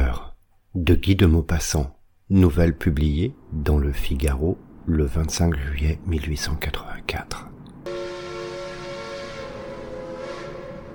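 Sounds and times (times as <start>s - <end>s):
speech: 0.7s - 7.6s
steam train running at full steam: 7.9s - 10.9s.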